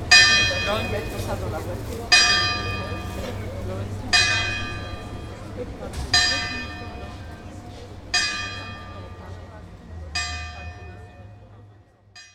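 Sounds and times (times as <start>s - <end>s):
construction site noise: 0.0s - 12.3s.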